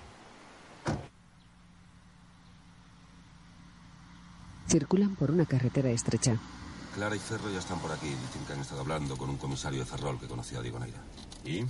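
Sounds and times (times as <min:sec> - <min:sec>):
car door shutting as someone gets into a car: 0:00.8 - 0:01.1
speech: 0:04.7 - 0:11.6.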